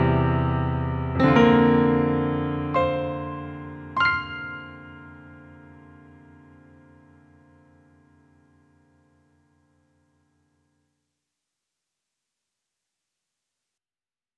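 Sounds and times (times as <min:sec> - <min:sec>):
piano: 0:00.0 - 0:10.8.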